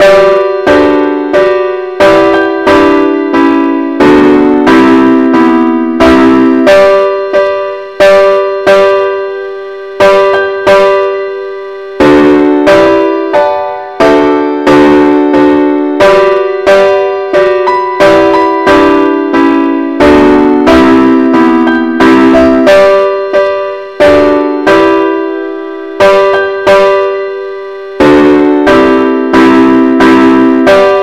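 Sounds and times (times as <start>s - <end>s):
hymn chords: 0.0s - 31.0s.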